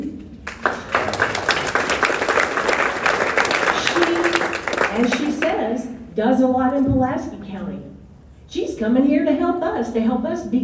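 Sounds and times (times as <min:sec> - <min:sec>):
audience applause: 0:00.5 - 0:05.6
speech: 0:06.2 - 0:07.4, 0:08.5 - 0:10.6.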